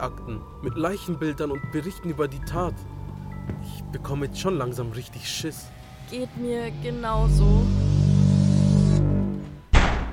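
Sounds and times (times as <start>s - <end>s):
speech: 0.0s - 3.0s, 3.6s - 7.9s
low humming drone: 0.0s - 9.6s
door slamming shut: 9.7s - 10.1s.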